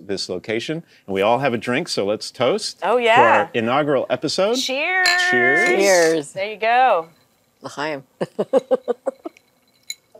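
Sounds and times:
speech: 0:00.1 - 0:09.2
ice clink: 0:08.6 - 0:10.1.

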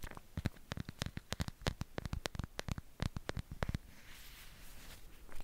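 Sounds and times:
taps, scratches and rubbing on a bare mic: 0:00.1 - 0:03.9.

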